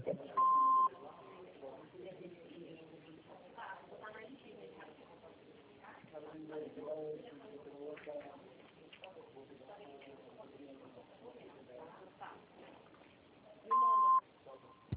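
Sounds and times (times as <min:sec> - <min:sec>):
answering machine beep: 0:00.4 - 0:00.9, 0:13.7 - 0:14.2.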